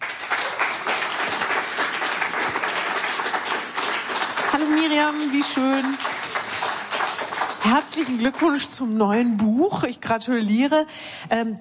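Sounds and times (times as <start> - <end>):
audience applause welcoming an author at a talk event: 0.0 - 9.0
speech: 4.6 - 6.1, 7.6 - 11.6.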